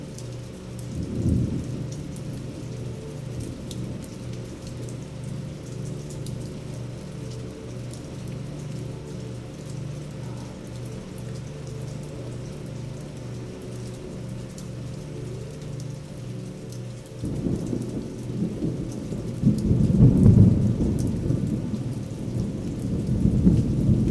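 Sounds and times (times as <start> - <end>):
thunderstorm: 0.9 - 2.2, 17.3 - 24.0.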